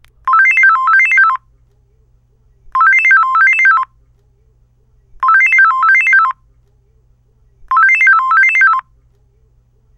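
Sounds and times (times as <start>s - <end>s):
LG analog phone ringtone: 0.3s - 1.4s, 2.8s - 3.9s, 5.2s - 6.4s, 7.7s - 8.9s.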